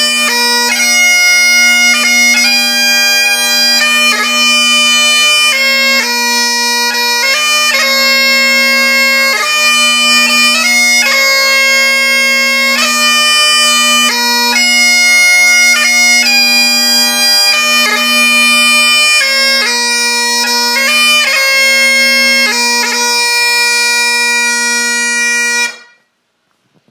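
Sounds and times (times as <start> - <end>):
Great Highland Pipes bagpipes: 0.0 - 26.1.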